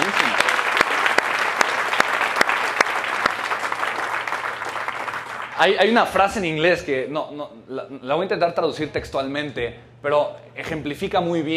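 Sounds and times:
audience applause: 0.0s - 5.9s
speech: 5.6s - 11.5s.

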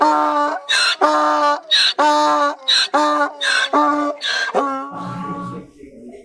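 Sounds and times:
shofar being blown: 0.0s - 5.7s.

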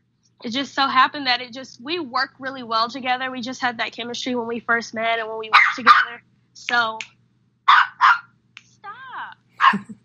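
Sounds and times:
speech: 0.4s - 7.8s
dog barking during an interview: 5.5s - 6.2s, 7.7s - 8.3s, 9.6s - 10.0s.

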